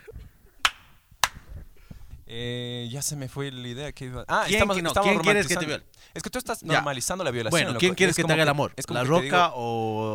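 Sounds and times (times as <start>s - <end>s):
hand claps to sync cameras: 0.6s - 1.5s
speech: 2.3s - 10.1s.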